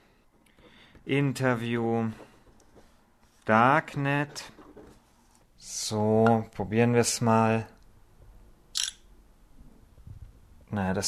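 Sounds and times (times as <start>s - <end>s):
speech: 1.0s - 2.3s, 3.5s - 4.6s, 5.6s - 7.8s, 10.7s - 11.0s
camera shutter photographing a paper note: 8.8s - 9.0s.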